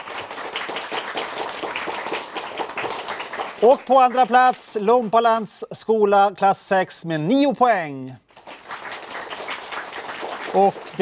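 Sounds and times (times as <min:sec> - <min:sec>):
audience applause: 0:00.0 - 0:04.6, 0:08.3 - 0:11.0
speech: 0:03.6 - 0:08.2, 0:10.6 - 0:11.0.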